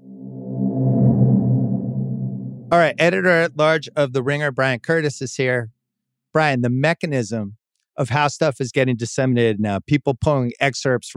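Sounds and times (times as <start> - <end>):
swoosh sound effect: 0.0 - 3.4
speech: 2.7 - 11.1.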